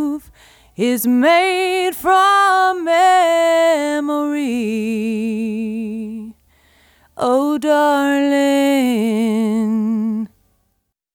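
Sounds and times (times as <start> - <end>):
vocal: 0.0 - 6.4, 7.2 - 10.4.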